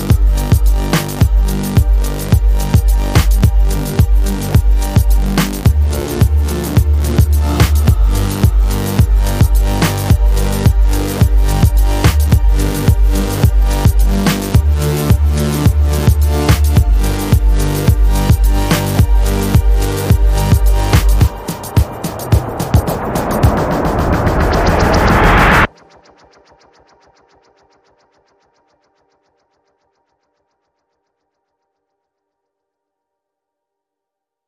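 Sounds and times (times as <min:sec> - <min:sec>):
robastep electronic music: 0:00.0 - 0:27.5.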